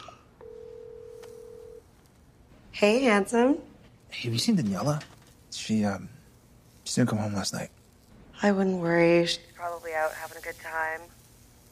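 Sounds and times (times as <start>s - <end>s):
cell phone steady tone: 0.0s - 1.9s
speech: 2.8s - 6.2s, 6.9s - 7.8s, 8.4s - 11.2s.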